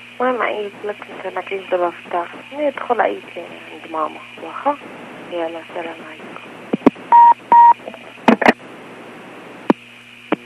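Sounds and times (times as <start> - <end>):
static hiss on a phone line: 0.0 - 10.4
speech: 0.2 - 6.5
telephone keypad tones: 7.1 - 7.8.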